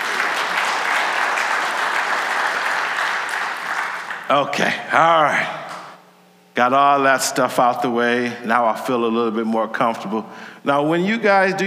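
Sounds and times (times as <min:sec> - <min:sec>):
audience hand clapping in praise: 0:00.0 - 0:04.7
speech: 0:04.3 - 0:05.6, 0:06.6 - 0:11.6.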